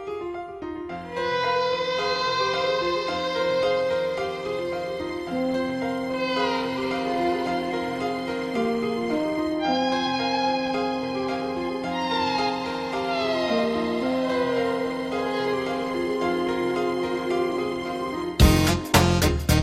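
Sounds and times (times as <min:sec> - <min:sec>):
Bollywood violin: 0:01.0 - 0:19.5.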